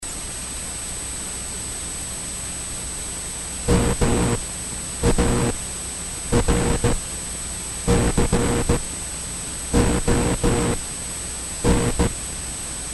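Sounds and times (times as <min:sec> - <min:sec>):
spark: 0:03.7 - 0:04.4, 0:05.0 - 0:05.6, 0:06.4 - 0:07.0, 0:07.9 - 0:08.8, 0:09.8 - 0:10.8, 0:11.7 - 0:12.2.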